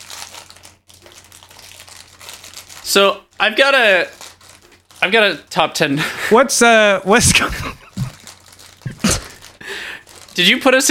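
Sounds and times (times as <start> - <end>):
chewing crackers from a box: 0.0 - 3.4, 7.9 - 10.5
speech: 2.9 - 4.2, 5.0 - 7.6, 10.4 - 10.9.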